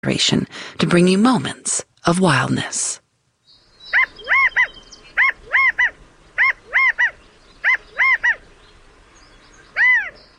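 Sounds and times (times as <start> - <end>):
speech: 0.0 - 3.0
California quail calling: 3.7 - 8.6, 9.6 - 10.3.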